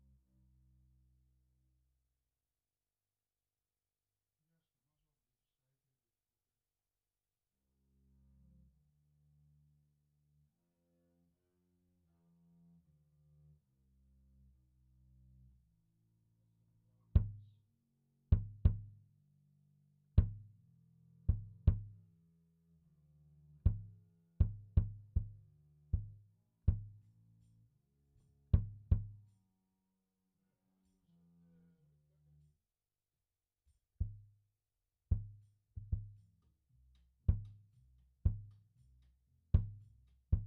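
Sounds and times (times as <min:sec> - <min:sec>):
kick drum: 0:17.2 - 0:17.5, 0:18.3 - 0:19.0, 0:20.2 - 0:20.6, 0:21.3 - 0:22.0, 0:23.7 - 0:25.4, 0:26.0 - 0:27.0, 0:28.6 - 0:29.2, 0:34.0 - 0:34.4, 0:35.1 - 0:36.3, 0:37.3 - 0:37.7, 0:38.3 - 0:38.6, 0:39.6 - 0:40.4.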